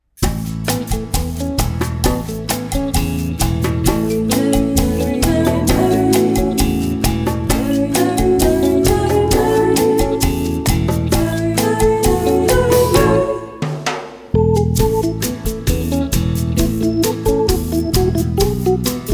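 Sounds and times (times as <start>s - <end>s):
instrumental Christmas music: 0.2s - 13.6s, 14.4s - 19.1s.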